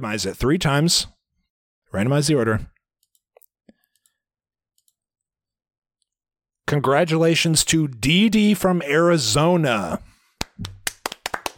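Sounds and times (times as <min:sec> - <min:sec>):
speech: 0:00.0 - 0:01.2, 0:01.9 - 0:02.7, 0:06.7 - 0:10.7
people clapping for a giveaway winner: 0:10.4 - 0:11.5.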